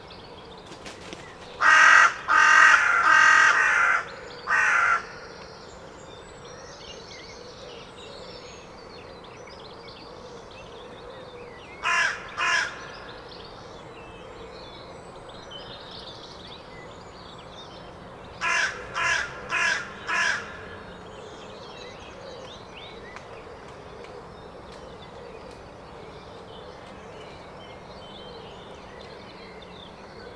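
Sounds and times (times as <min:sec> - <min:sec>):
faint high twittering from small birds: 0:00.1 - 0:30.3
carrion crow cawing: 0:01.2 - 0:05.3, 0:11.8 - 0:13.1, 0:18.4 - 0:20.9.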